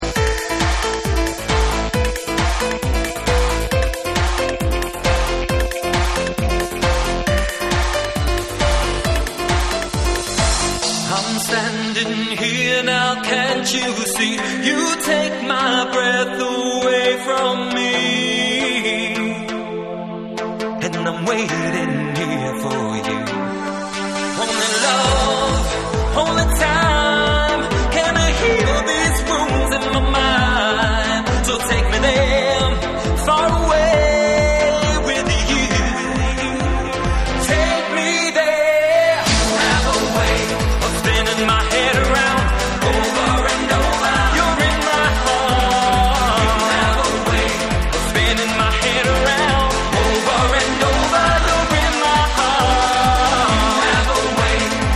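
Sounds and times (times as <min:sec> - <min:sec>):
vocal trance mix: 0:00.0 - 0:54.9.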